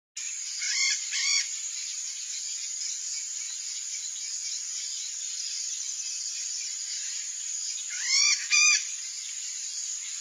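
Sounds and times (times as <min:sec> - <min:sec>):
red-bellied macaw giving raspy screeches: 0:07.9 - 0:08.8.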